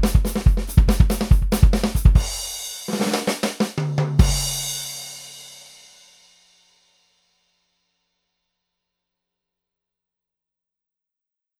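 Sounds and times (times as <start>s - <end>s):
dry clean donut piccolo drums: 0.0s - 5.1s.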